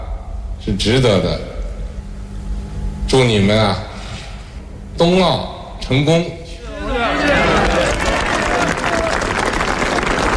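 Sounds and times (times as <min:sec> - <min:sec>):
speech: 0:00.7 - 0:01.5, 0:03.1 - 0:03.9, 0:05.0 - 0:06.4
Winter Olympics athletes and staff applauding: 0:07.1 - 0:10.3.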